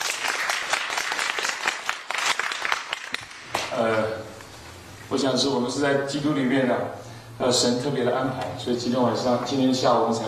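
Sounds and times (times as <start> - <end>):
applause from a church gathering: 0.0 - 3.7
speech: 3.7 - 4.3, 5.1 - 10.2.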